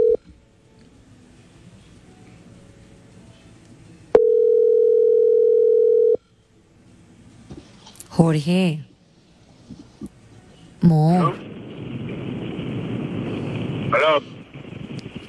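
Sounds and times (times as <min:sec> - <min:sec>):
telephone beep: 0:00.0 - 0:00.2, 0:04.2 - 0:06.2
faint hiss: 0:00.2 - 0:04.2, 0:06.2 - 0:15.2
speech: 0:08.2 - 0:08.9, 0:10.8 - 0:11.4.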